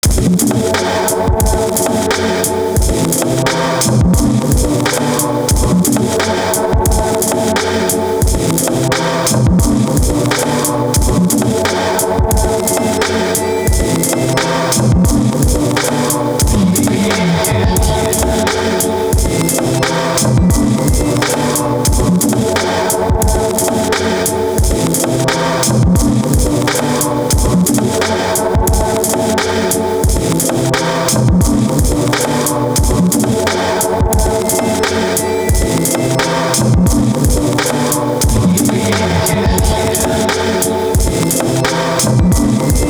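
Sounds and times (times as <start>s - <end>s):
atmosphere: 0.0s - 42.8s.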